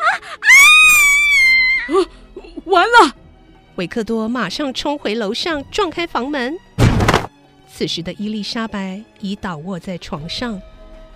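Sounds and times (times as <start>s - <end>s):
woman's terrified scream: 0.0s - 2.1s
speech: 3.8s - 6.8s, 7.8s - 10.7s.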